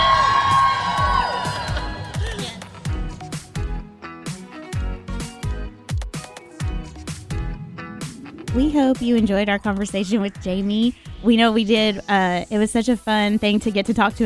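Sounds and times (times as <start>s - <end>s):
live studio audience at a women's event cheering and whooping: 0.0s - 2.6s
steady thumping rhythmic beat with sharp percussive hits: 0.6s - 11.3s
speech: 8.6s - 14.2s.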